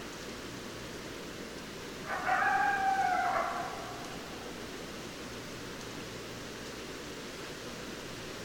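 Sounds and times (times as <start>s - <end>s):
faint constant hiss: 0.0s - 8.4s
coyote howling: 2.0s - 4.8s.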